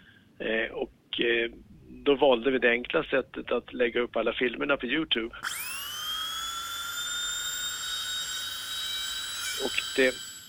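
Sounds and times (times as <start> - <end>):
faint hiss: 0.0 - 5.4
speech: 0.4 - 5.8, 9.6 - 10.2
Belgian dentist's drill whining: 5.4 - 10.4.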